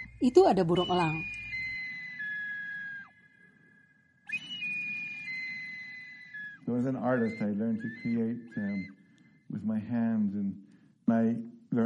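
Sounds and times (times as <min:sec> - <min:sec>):
handmade flute playing: 0:00.0 - 0:10.0
speech: 0:00.2 - 0:01.4, 0:06.7 - 0:11.8.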